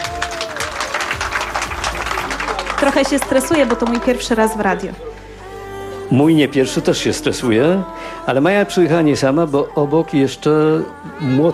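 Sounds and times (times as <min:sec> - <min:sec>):
a few people clapping in a radio studio: 0:00.0 - 0:05.2
speech: 0:02.8 - 0:05.1, 0:06.1 - 0:11.5.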